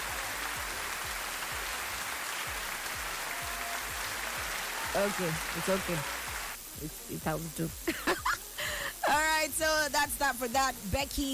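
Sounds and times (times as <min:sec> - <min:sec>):
audience clapping: 0:00.0 - 0:06.6
speech: 0:05.0 - 0:06.2, 0:06.8 - 0:08.4, 0:09.1 - 0:11.3.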